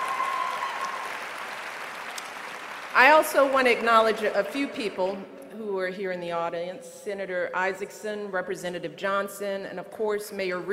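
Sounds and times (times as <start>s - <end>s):
audience applause at a Spelman College event: 0.0s - 3.4s
speech: 3.0s - 10.7s.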